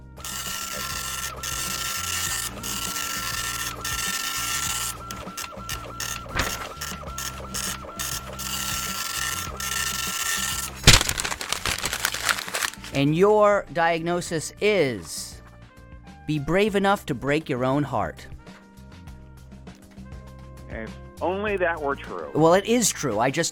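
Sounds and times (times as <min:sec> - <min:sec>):
printer printing: 0:00.0 - 0:12.8
speech: 0:13.0 - 0:15.2, 0:16.3 - 0:18.3, 0:21.2 - 0:23.5.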